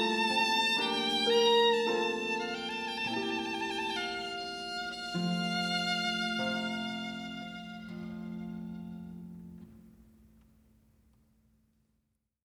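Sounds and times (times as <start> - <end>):
minuet duet of harp and violin: 0.0 - 9.7.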